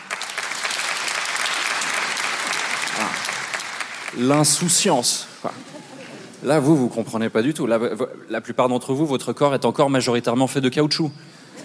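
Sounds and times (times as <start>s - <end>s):
crowd applause: 0.0s - 4.8s
speech: 4.2s - 5.8s, 6.4s - 11.4s.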